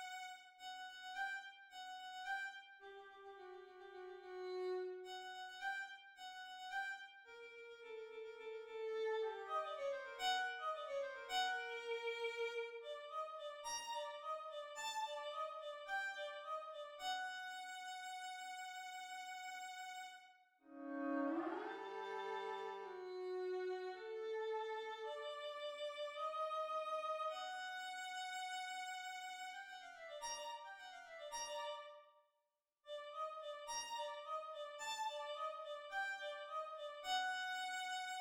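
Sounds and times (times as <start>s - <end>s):
violin solo: 0.0s - 32.0s, 33.2s - 38.1s.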